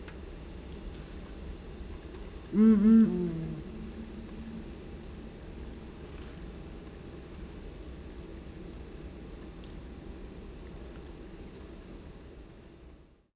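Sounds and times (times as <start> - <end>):
duet: 2.5 - 5.5.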